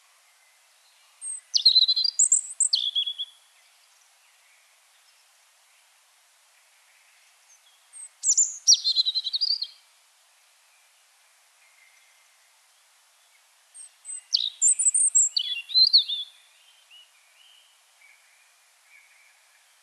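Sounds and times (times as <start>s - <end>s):
European robin singing: 0.8s - 5.3s, 6.8s - 9.9s, 11.6s - 19.8s.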